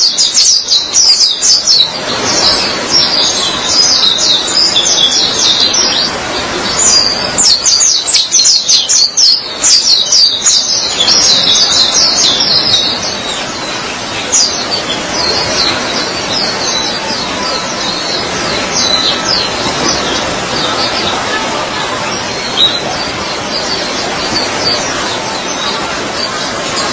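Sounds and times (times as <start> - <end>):
white-eye song: 0.3 - 26.9.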